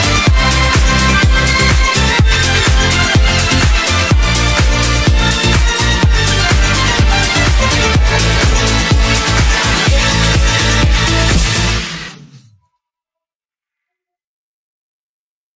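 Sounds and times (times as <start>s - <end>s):
instrumental music: 0.0s - 12.4s.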